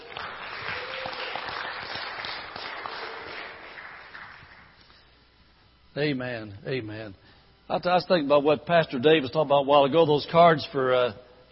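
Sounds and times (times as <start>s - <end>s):
audience cheering and clapping: 0.0s - 4.7s
speech: 6.0s - 11.5s.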